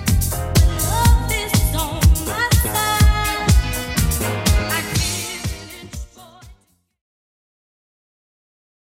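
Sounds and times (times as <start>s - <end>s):
70s style track: 0.0s - 7.0s.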